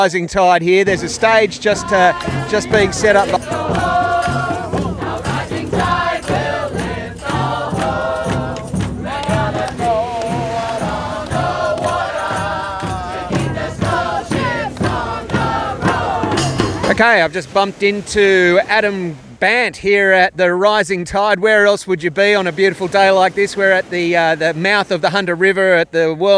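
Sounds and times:
speech: 0.0 - 3.8, 17.0 - 26.3
large outdoor protest crowd roar of voices: 1.8 - 17.0.

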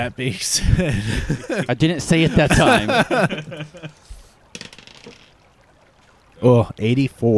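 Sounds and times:
speech: 0.0 - 5.2, 6.4 - 7.3
laughter: 0.5 - 4.1
percentile dice rolling on table: 4.6 - 5.3.

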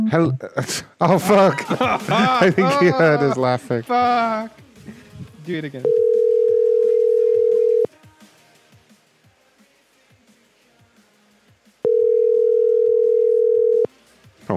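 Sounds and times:
speech: 0.1 - 4.6, 5.5 - 6.1
laughter: 0.5 - 5.1
telephone dial tone after call hung up: 5.9 - 7.9, 11.9 - 13.9.

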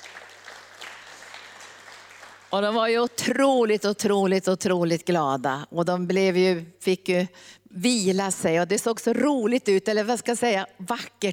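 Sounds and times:
audience applause: 0.0 - 2.8
speech: 2.5 - 11.3.

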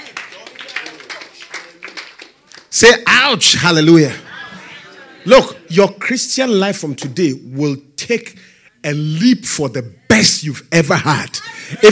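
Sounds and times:
church congregation clapping in a steady rhythm: 0.0 - 3.0
speech: 2.8 - 4.3, 5.2 - 11.9
laughter: 4.0 - 5.7, 11.4 - 11.9.

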